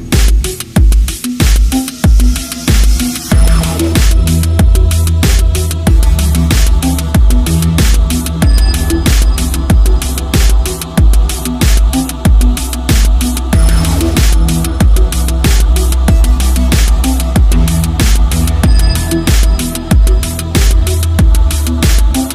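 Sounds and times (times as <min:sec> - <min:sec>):
synthwave music loop: 0:00.0 - 0:22.3.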